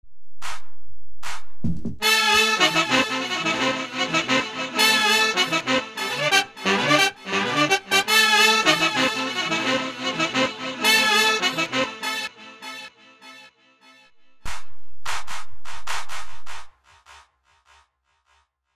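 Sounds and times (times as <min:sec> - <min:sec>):
hurried fanfare: 0:02.0 - 0:12.9.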